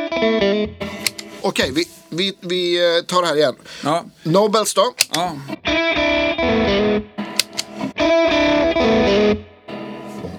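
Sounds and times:
electric guitar played through an overdrive pedal: 0.0 - 2.1, 5.6 - 10.3
speech: 0.2 - 7.1.

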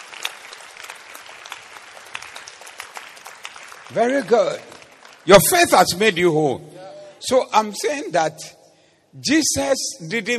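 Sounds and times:
audience applause: 0.0 - 5.3
speech: 3.9 - 8.6, 9.2 - 10.3.

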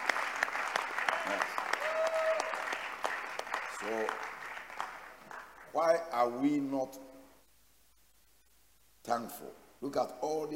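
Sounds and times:
crowd clapping: 0.0 - 6.0
speech: 1.3 - 1.6, 3.8 - 4.2, 5.7 - 7.1, 9.1 - 10.5.

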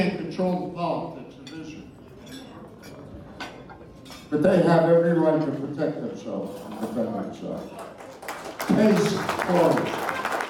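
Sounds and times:
speech: 0.0 - 1.7, 4.3 - 8.0, 8.7 - 10.2
fundraiser crowd applauding: 7.7 - 10.4.

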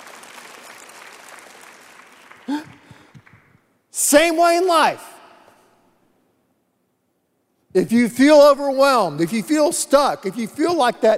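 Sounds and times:
audience clapping: 0.0 - 3.7
speech: 4.0 - 5.1, 7.7 - 11.1.

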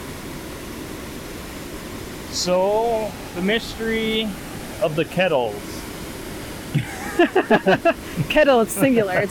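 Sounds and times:
rushing water of a flowing river: 0.0 - 9.2
speech: 2.3 - 5.8, 6.7 - 9.2
laughter: 6.7 - 9.2.

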